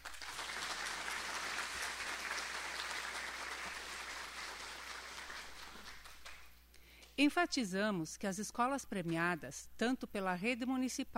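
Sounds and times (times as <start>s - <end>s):
audience applause: 0.0s - 6.5s
speech: 7.2s - 11.1s.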